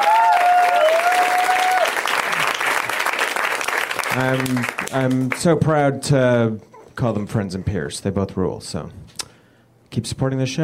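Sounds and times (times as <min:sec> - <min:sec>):
audience round of applause: 0:00.0 - 0:05.5
speech: 0:04.2 - 0:09.1, 0:09.9 - 0:10.6.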